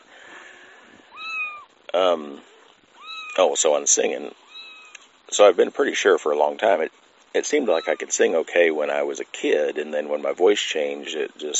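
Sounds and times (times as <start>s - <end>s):
nursing kittens meowing: 1.1s - 1.7s, 3.0s - 3.4s, 4.4s - 5.1s, 7.6s - 8.1s
speech: 2.0s - 2.5s, 3.4s - 4.4s, 5.3s - 11.5s.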